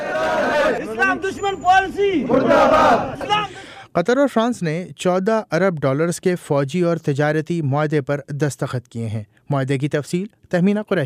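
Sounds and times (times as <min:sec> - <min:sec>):
protesters chanting slogans: 0:00.0 - 0:03.6
speech: 0:01.1 - 0:11.0.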